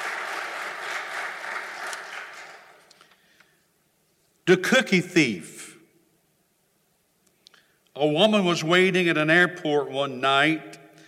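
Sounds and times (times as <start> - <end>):
audience applause: 0.0 - 2.9
speech: 4.5 - 5.6, 8.0 - 10.8.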